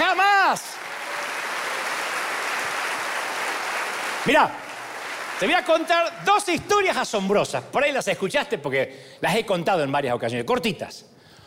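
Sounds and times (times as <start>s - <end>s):
audience applause: 0.0s - 6.3s
speech: 0.5s - 0.8s, 4.2s - 4.6s, 5.4s - 11.1s.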